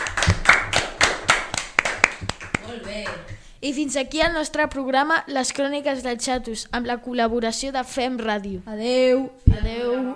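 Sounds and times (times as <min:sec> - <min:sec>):
applause, hands clapping: 0:00.0 - 0:03.4
speech: 0:03.6 - 0:10.1.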